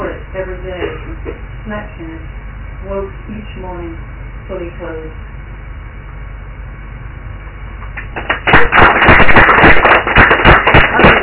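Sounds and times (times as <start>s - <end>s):
speech: 0.6s - 5.3s
audience clapping: 8.0s - 11.2s.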